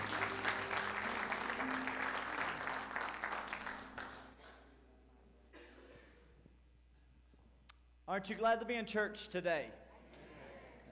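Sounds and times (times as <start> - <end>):
audience clapping hands in praise: 0.0 - 4.7
speech: 8.1 - 9.8.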